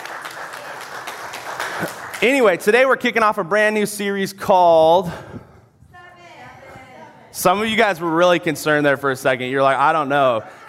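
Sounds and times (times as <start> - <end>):
audience hand clap: 0.0 - 3.0
speech: 1.8 - 5.5, 7.4 - 10.6.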